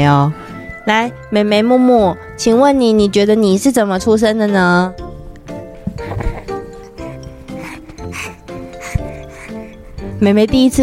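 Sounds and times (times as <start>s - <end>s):
speech: 0.0s - 5.0s, 10.2s - 10.8s
little girl panting excitedly: 5.9s - 10.8s.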